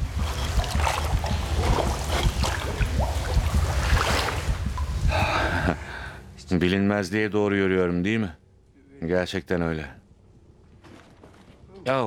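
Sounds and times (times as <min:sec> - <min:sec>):
water splashing in a cave river in a video game: 0:00.0 - 0:05.2
speech: 0:06.5 - 0:08.4, 0:09.0 - 0:10.0, 0:11.8 - 0:12.0.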